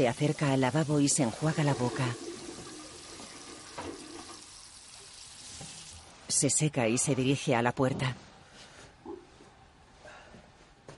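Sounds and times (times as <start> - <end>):
speech: 0.0 - 2.3, 6.4 - 8.3
toilet being flushed: 0.0 - 6.1.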